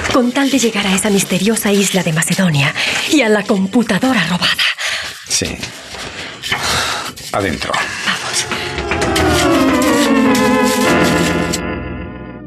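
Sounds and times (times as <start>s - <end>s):
speech: 0.2s - 5.9s, 7.3s - 9.6s
luxury jet engines warming up on runway: 8.2s - 12.2s.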